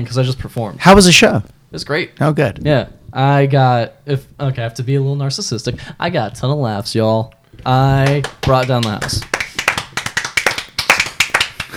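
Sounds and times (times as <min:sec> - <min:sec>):
speech: 0:00.0 - 0:09.4
clapping: 0:08.0 - 0:11.7.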